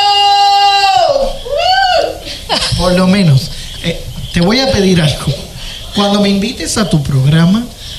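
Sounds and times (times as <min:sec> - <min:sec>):
person screaming: 0:00.0 - 0:02.3
speech: 0:02.8 - 0:05.4, 0:06.0 - 0:07.8.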